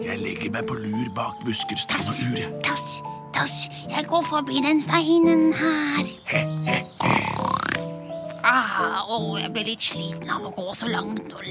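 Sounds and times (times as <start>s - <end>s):
speech: 0.0s - 7.3s, 8.5s - 11.4s
voice imitating pig grunting: 6.3s - 7.9s.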